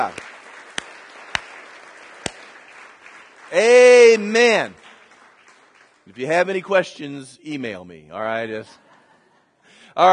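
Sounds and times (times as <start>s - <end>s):
speech: 0.0s - 0.2s, 3.5s - 4.8s, 6.1s - 8.8s, 10.0s - 10.1s
audience clapping: 0.0s - 6.9s.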